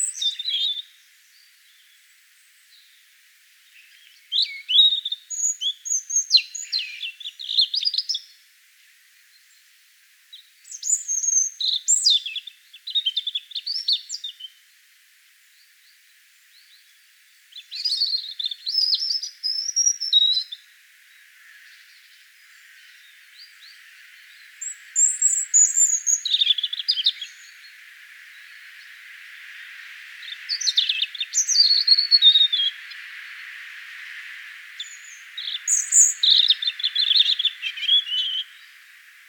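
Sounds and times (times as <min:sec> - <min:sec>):
European robin singing: 0:00.0 - 0:08.4, 0:10.3 - 0:14.6, 0:15.6 - 0:39.2.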